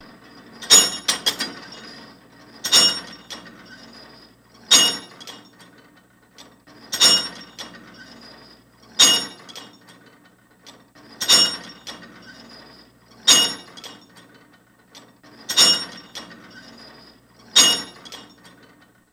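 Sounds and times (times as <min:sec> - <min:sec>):
weight machine equipment clink: 0:00.4 - 0:05.7, 0:06.8 - 0:10.0, 0:11.1 - 0:14.4, 0:15.4 - 0:18.9.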